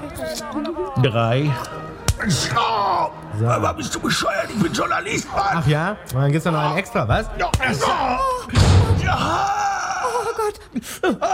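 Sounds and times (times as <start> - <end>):
speech: 0.2 - 9.6, 10.4 - 11.3
man crying in pain: 7.7 - 11.3
door slamming shut on a foot: 8.5 - 9.4.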